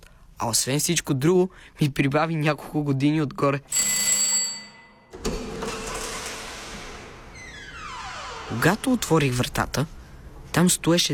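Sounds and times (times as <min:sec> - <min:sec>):
speech: 0:00.4 - 0:04.0, 0:08.6 - 0:10.0, 0:10.6 - 0:11.1
doorbell ringing: 0:03.7 - 0:06.0.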